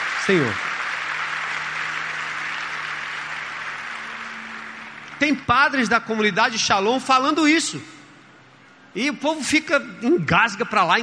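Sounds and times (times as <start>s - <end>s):
audience applauding: 0.0s - 6.4s
speech: 0.3s - 0.6s, 5.2s - 8.0s, 9.0s - 11.0s.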